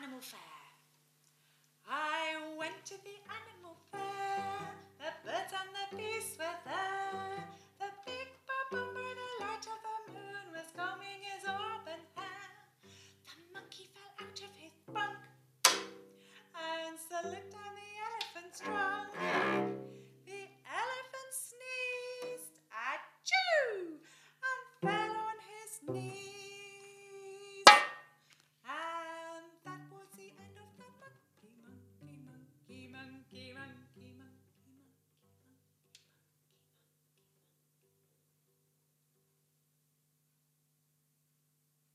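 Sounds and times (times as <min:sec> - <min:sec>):
vocals of a song: 0:01.9 - 0:12.6, 0:16.6 - 0:19.7, 0:20.3 - 0:27.8, 0:28.7 - 0:35.0.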